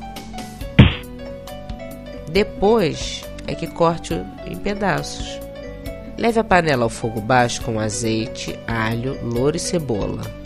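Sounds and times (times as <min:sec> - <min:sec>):
octopus beaten between wooden boards: 0:00.8 - 0:01.0
speech: 0:02.3 - 0:05.4, 0:06.2 - 0:10.4.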